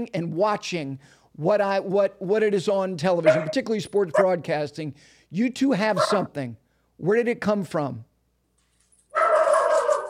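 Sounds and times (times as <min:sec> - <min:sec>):
speech: 0:00.0 - 0:08.1
dog barking: 0:03.2 - 0:04.4, 0:06.0 - 0:06.3, 0:09.2 - 0:10.0.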